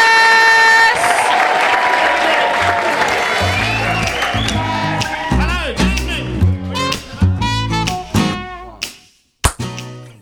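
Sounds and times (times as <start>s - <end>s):
audience applause and cheering: 0.3s - 8.1s.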